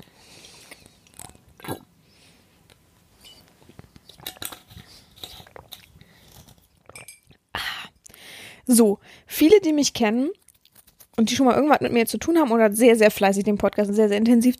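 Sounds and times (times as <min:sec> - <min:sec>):
person draining the last of a bottle: 0:00.7 - 0:02.0, 0:04.1 - 0:07.0
speech: 0:08.7 - 0:10.4, 0:11.2 - 0:14.5.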